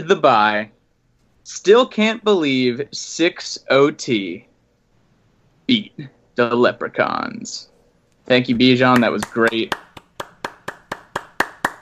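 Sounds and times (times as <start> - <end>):
speech: 0.0 - 0.8, 1.5 - 4.5, 5.7 - 7.7, 8.3 - 9.8
hands clapping: 8.8 - 11.8.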